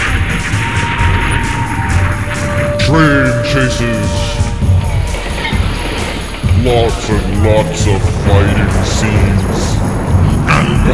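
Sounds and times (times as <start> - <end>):
explosion sound effect roar: 0.0 - 6.7, 7.4 - 10.9
speech: 2.9 - 4.4, 6.6 - 10.0.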